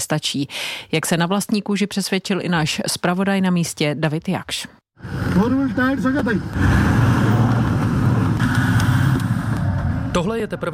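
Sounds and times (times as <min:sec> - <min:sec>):
speech: 0:00.0 - 0:07.2, 0:10.2 - 0:10.7
Toyota off-road car driving on rough bumpy road: 0:05.0 - 0:10.4.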